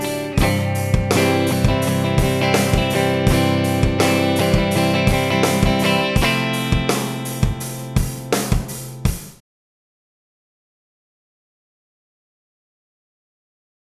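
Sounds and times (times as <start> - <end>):
rhythm guitar: 0.0 - 9.4.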